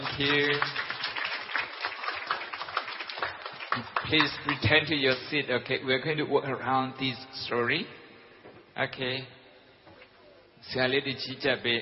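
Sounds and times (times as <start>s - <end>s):
audience applause: 0.0s - 4.7s
speech: 0.2s - 0.8s, 3.8s - 8.0s, 8.8s - 9.4s, 10.6s - 11.8s.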